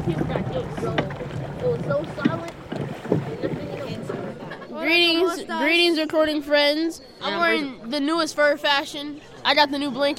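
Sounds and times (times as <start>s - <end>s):
rushing river water during whitewater rafting: 0.0s - 4.6s
splashy raft paddle strokes: 0.0s - 4.6s
speech: 0.1s - 2.6s, 4.8s - 10.1s.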